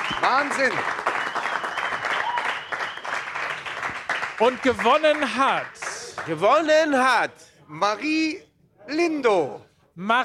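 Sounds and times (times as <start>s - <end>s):
thunderous applause: 0.0s - 6.3s
speech: 0.2s - 1.1s, 4.4s - 10.2s.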